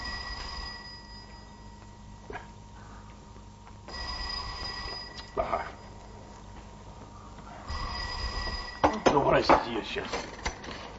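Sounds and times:
telephone ringing: 0.0s - 2.1s, 3.9s - 6.8s, 7.7s - 10.4s
speech: 9.2s - 10.3s.

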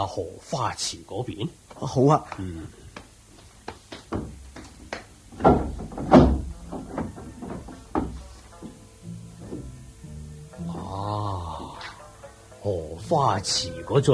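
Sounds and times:
speech: 0.0s - 2.8s, 13.1s - 14.1s
hall door being opened: 4.1s - 8.8s, 9.4s - 9.8s.

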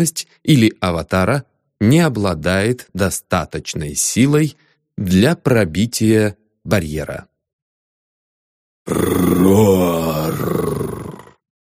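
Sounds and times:
speech: 0.0s - 7.3s, 8.8s - 10.7s
roar of a revived ancient creature: 8.9s - 11.4s.

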